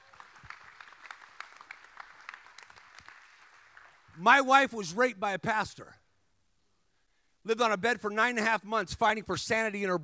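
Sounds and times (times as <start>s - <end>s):
audience clapping: 0.0s - 4.2s
speech: 4.2s - 6.0s, 7.4s - 10.0s.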